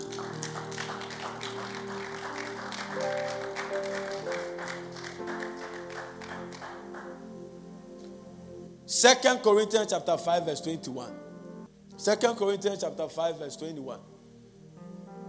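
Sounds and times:
audience clapping: 0.0 - 7.3
speech: 9.0 - 11.2, 12.0 - 14.1.

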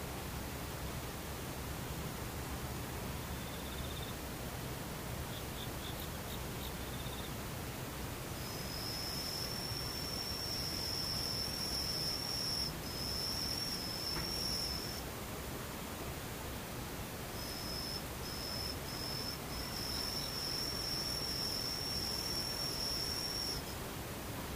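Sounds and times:
soft hiss: 0.0 - 24.5
faint insect chirp: 3.2 - 4.3, 5.2 - 7.4, 8.1 - 15.1, 17.2 - 23.8.

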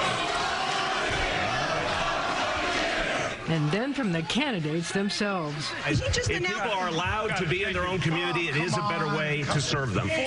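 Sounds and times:
audience shouting at a mayoral general election debate: 0.0 - 5.9
speech: 3.5 - 10.2.

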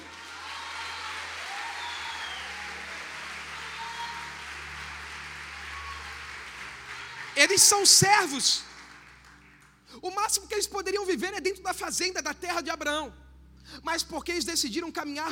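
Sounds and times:
audience applause: 0.0 - 9.9
speech: 7.4 - 8.7, 10.0 - 15.3.

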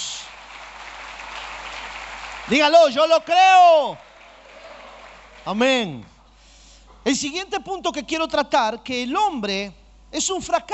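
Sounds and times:
audience applause: 0.0 - 5.6
speech: 2.5 - 4.0, 5.5 - 6.1, 7.0 - 10.7.

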